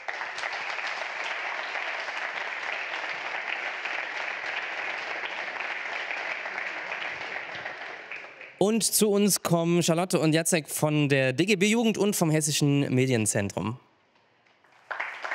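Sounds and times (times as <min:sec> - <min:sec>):
audience applause: 0:00.0 - 0:08.6, 0:14.7 - 0:15.3
speech: 0:08.6 - 0:13.9.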